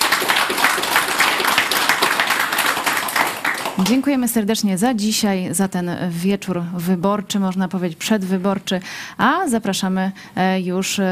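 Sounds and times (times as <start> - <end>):
audience applause: 0.0 - 4.1
speech: 3.8 - 11.1.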